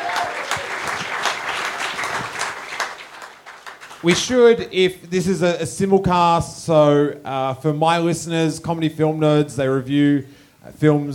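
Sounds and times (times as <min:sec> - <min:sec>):
audience applause: 0:00.0 - 0:04.2
speech: 0:04.0 - 0:11.1.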